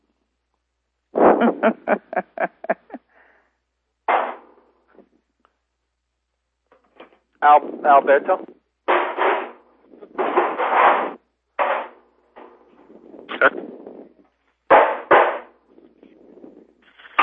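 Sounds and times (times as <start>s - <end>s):
speech: 1.4s - 2.8s, 7.4s - 8.5s
laughter: 1.4s - 3.1s
hammering: 4.1s - 4.5s, 8.9s - 9.6s, 10.2s - 12.6s, 14.7s - 15.6s.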